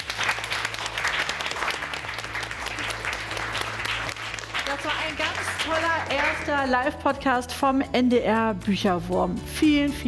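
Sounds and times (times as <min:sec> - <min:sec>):
children clapping: 0:00.0 - 0:06.7
speech: 0:04.8 - 0:10.0.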